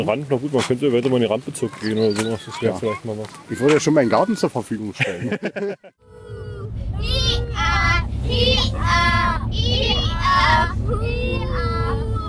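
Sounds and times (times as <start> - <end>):
speech: 0.0 - 6.3, 7.0 - 11.7
children playing and shouting inside bus: 1.6 - 4.6, 6.0 - 12.2
laughter: 4.9 - 6.0, 8.3 - 12.2
bus engine low rumble: 6.0 - 12.2.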